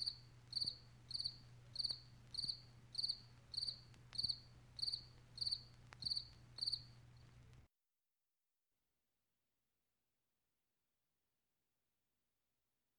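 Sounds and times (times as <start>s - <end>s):
cricket chirping: 0.0s - 7.4s.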